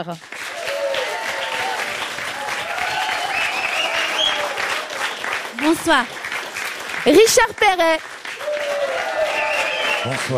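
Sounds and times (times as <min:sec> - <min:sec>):
speech: 0:00.0 - 0:00.4, 0:05.6 - 0:06.2, 0:07.0 - 0:08.2, 0:10.0 - 0:10.3
crowd clapping: 0:00.0 - 0:10.3
faint whoops and cheers: 0:00.5 - 0:05.1, 0:08.4 - 0:10.3.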